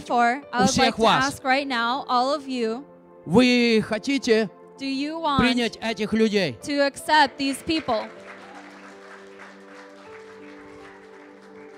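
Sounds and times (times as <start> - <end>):
speech: 0.0 - 8.2
audience applauding: 7.3 - 11.7.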